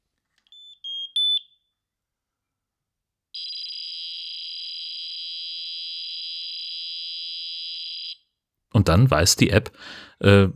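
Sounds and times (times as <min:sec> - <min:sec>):
smoke detector chirping tones: 0:00.5 - 0:01.6, 0:03.4 - 0:08.2
smoke detector fax-like data tone sending photocell and battery status to an app: 0:03.4 - 0:08.2
speech: 0:08.8 - 0:10.5.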